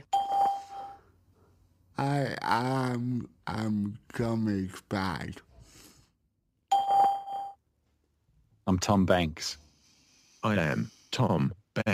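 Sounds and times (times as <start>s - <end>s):
voicemail recording beep: 0.0s - 1.0s
speech: 2.0s - 5.5s, 8.7s - 9.6s, 10.4s - 11.9s.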